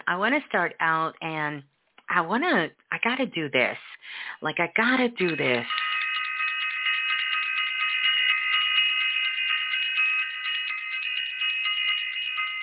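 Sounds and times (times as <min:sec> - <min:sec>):
speech: 0:00.1 - 0:05.8
bell ringing: 0:05.0 - 0:12.6.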